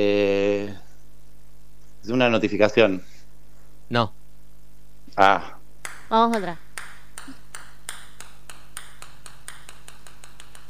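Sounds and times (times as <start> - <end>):
speech: 0.0 - 0.7, 2.2 - 3.1, 3.9 - 4.2, 5.2 - 6.6
small ball bouncing: 5.8 - 10.6.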